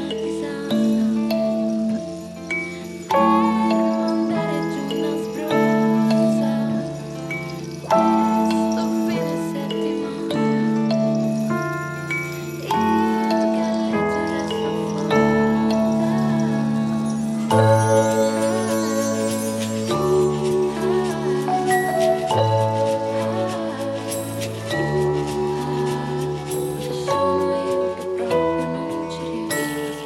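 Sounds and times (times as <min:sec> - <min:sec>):
keyboard: 0:00.0 - 0:30.0
percussion: 0:00.0 - 0:30.0.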